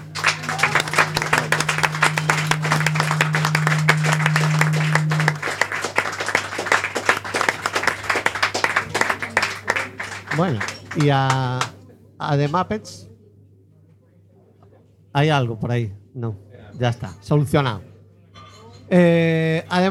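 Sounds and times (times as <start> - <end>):
audience applause: 0.0 - 11.5
speech: 10.4 - 13.1, 15.1 - 17.9, 18.9 - 19.8.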